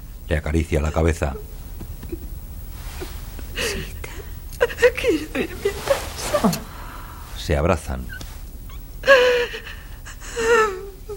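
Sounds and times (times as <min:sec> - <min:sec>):
speech: 0:00.3 - 0:01.6, 0:05.0 - 0:06.7, 0:07.5 - 0:08.2
young woman sobbing: 0:03.0 - 0:06.9, 0:09.0 - 0:11.1.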